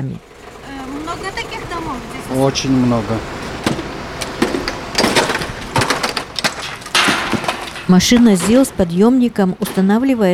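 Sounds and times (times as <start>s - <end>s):
speech: 0.0s - 0.3s, 1.2s - 3.4s, 7.9s - 10.3s
axe knocking icicles off a roof: 4.4s - 8.8s.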